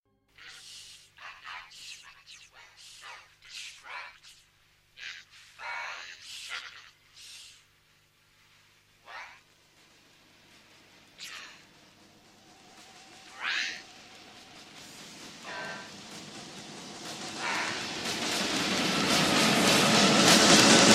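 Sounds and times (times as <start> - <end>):
self-destruct warning: 0.4 - 7.7, 9.0 - 9.6, 12.7 - 20.8.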